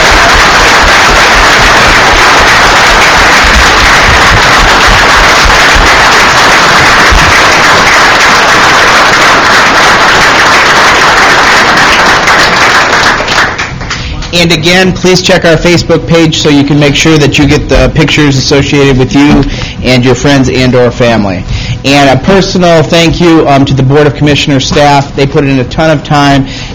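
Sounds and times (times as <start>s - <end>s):
audience applause: 0.0s - 14.1s
speech: 14.4s - 26.7s.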